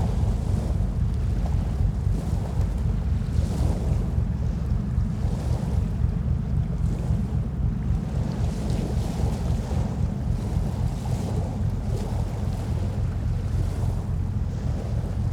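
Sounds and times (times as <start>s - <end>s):
container ship engine bass: 0.0s - 15.3s.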